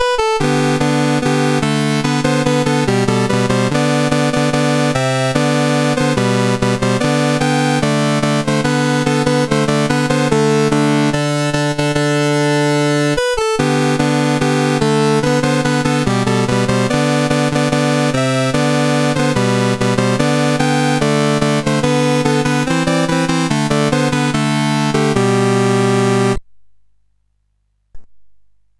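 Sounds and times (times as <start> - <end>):
chiptune music on CSG8580R5 chip: 0.0 - 26.4.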